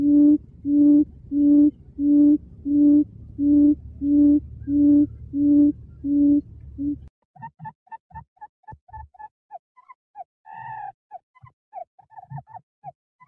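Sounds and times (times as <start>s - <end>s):
quail hooting: 0.0s - 8.2s, 9.8s - 11.5s.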